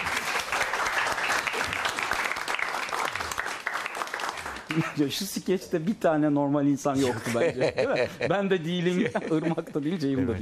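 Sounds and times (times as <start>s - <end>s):
audience applause: 0.0s - 5.0s
laughter: 4.7s - 5.3s, 7.0s - 10.4s
speech: 4.7s - 10.4s.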